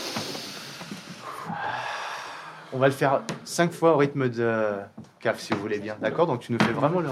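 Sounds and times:
group in a circle taking a deep breath in during a breathing exercise: 0:00.0 - 0:02.9
speech: 0:02.7 - 0:07.1.

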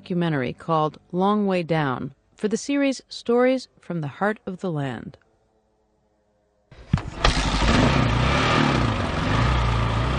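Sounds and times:
speech: 0:00.1 - 0:05.2
motorcycle climbing a steep muddy road: 0:06.8 - 0:10.1.

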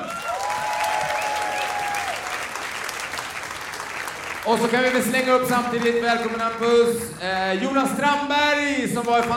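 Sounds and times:
audience applause: 0:00.0 - 0:07.1
speech: 0:04.5 - 0:09.3.

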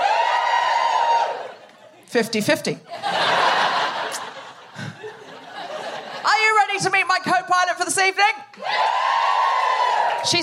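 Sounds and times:
audience cheering: 0:00.0 - 0:01.7, 0:08.5 - 0:10.4
speech: 0:02.1 - 0:03.2, 0:06.8 - 0:09.0
laughter: 0:02.9 - 0:06.4.

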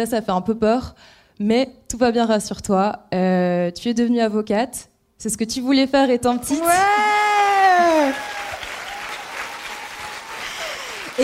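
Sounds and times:
speech: 0:00.0 - 0:07.2
audience applause: 0:07.5 - 0:11.2.

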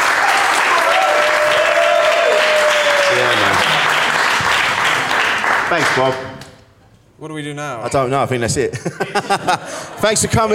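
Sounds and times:
round of applause from an audience: 0:00.0 - 0:06.2
speech: 0:05.7 - 0:06.4, 0:07.2 - 0:10.5
laughter: 0:08.6 - 0:10.5.

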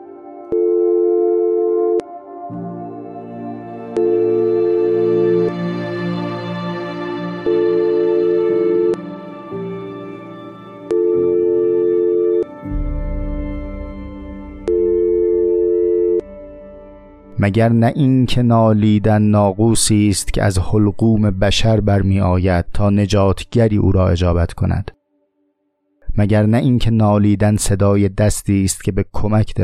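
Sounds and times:
droning music: 0:00.0 - 0:19.4
continuous telephone busy tone: 0:00.5 - 0:02.0, 0:04.0 - 0:05.6, 0:07.4 - 0:09.0, 0:10.9 - 0:12.5, 0:14.7 - 0:16.2
speech: 0:17.4 - 0:25.0, 0:26.2 - 0:29.6.

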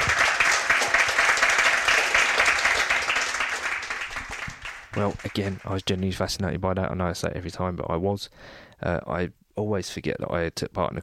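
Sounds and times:
audience applause: 0:00.0 - 0:06.0
speech: 0:05.0 - 0:11.0.

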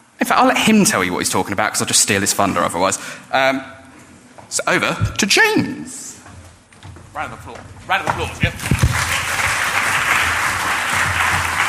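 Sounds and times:
speech: 0:00.3 - 0:03.8, 0:04.5 - 0:06.0, 0:07.2 - 0:09.1
audience applause: 0:08.2 - 0:11.6.

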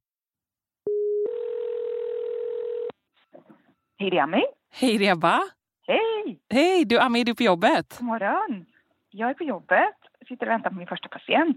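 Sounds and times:
telephone ringing tone: 0:00.9 - 0:03.0
speech: 0:04.0 - 0:11.5.

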